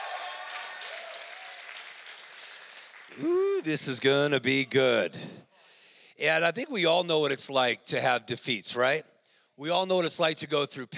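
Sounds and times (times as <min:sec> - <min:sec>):
faint audience shouts and cheers: 0:00.0 - 0:02.0
audience applause: 0:00.0 - 0:03.8
speech: 0:03.1 - 0:05.4, 0:06.2 - 0:10.9.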